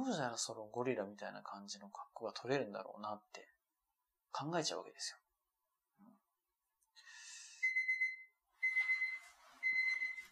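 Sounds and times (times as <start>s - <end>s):
speech: 0.1s - 3.5s, 4.3s - 5.2s
electronic kitchen timer beeping while making coffee: 7.6s - 10.2s.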